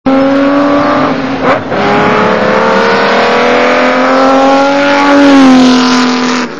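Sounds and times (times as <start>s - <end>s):
Ferrari 250 engine: 0.0s - 6.5s.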